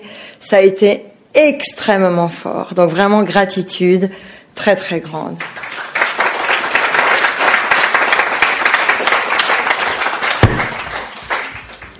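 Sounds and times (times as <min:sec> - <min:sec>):
speech: 0:00.5 - 0:05.7
crowd applauding: 0:05.4 - 0:11.9.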